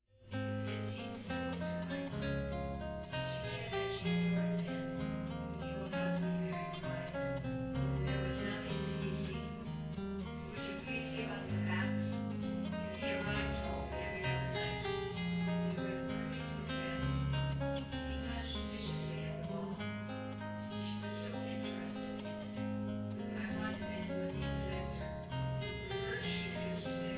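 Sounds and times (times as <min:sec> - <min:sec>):
guitar: 0:00.1 - 0:27.1.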